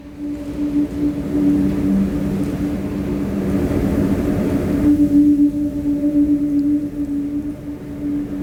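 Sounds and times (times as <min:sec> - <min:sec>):
whirly tube being spun with hollow whistling drone: 0:00.0 - 0:08.4.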